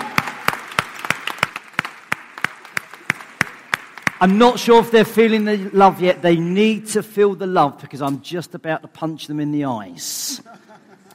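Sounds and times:
crowd noise: 0:00.0 - 0:06.4
rhythmic audience claps: 0:00.0 - 0:06.6
speech: 0:04.2 - 0:10.8
laughter: 0:10.2 - 0:11.1.

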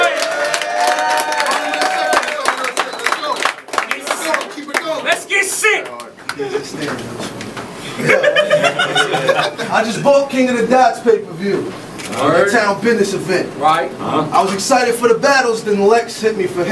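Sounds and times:
crowd cheering: 0:00.0 - 0:06.5
scattered clapping: 0:00.0 - 0:07.6
laughter: 0:08.0 - 0:09.7
speech: 0:09.7 - 0:16.7.

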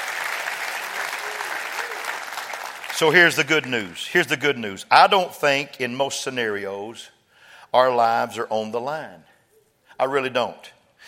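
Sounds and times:
audience clapping hands: 0:00.0 - 0:04.2
speech: 0:03.0 - 0:09.3, 0:10.0 - 0:10.8.

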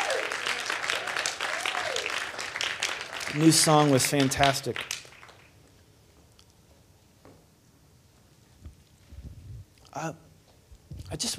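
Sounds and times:
applause: 0:00.0 - 0:05.6
speech: 0:03.3 - 0:05.0, 0:10.0 - 0:10.2, 0:11.1 - 0:11.3.

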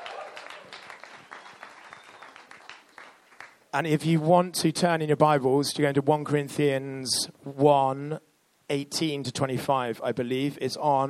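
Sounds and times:
crowd applauding: 0:00.0 - 0:03.6
speech: 0:03.7 - 0:11.0.

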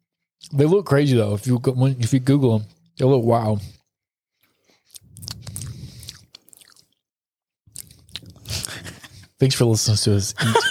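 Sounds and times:
speech: 0:00.4 - 0:03.8, 0:09.4 - 0:10.6
crackly chewing of a coconut grape: 0:03.8 - 0:07.1, 0:07.7 - 0:09.1.

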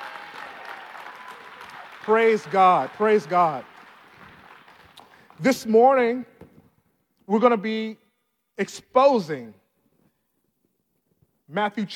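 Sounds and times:
audience hand clapping in praise: 0:00.0 - 0:05.6
speech: 0:02.1 - 0:03.7, 0:05.4 - 0:06.4, 0:07.3 - 0:08.0, 0:08.6 - 0:09.6, 0:11.5 - 0:11.9.

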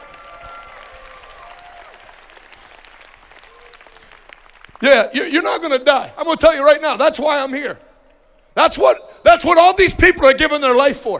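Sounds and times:
audience hand clapping: 0:00.0 - 0:05.2
speech: 0:04.8 - 0:07.8, 0:08.6 - 0:11.1.

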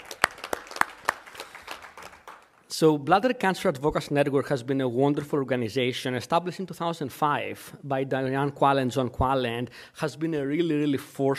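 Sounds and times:
audience applause: 0:00.0 - 0:02.6
speech: 0:02.8 - 0:11.3.

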